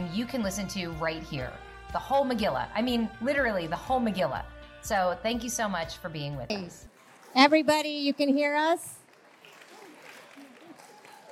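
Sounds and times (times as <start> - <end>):
speech: 0.1 - 9.0
audience clapping: 8.5 - 11.3.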